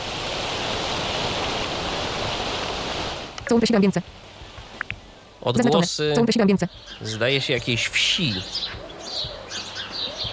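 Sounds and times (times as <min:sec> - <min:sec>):
autumn leaves rustling, sleep app ambience: 0:00.0 - 0:10.3
speech: 0:03.5 - 0:04.2, 0:05.4 - 0:08.8.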